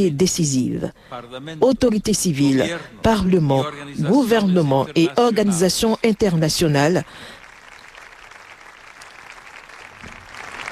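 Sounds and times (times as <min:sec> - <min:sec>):
speech: 0:00.0 - 0:07.4
applause after a speech: 0:06.3 - 0:10.7.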